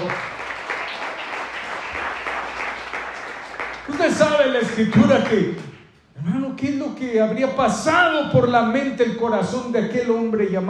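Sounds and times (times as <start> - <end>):
audience applause: 0.0 - 5.7
speech: 4.1 - 10.6.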